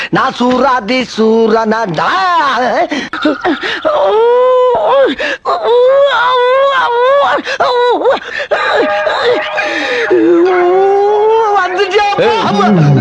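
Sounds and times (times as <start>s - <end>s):
speech: 0.1s - 12.9s
person crying loudly with wails and sobs: 3.2s - 12.8s.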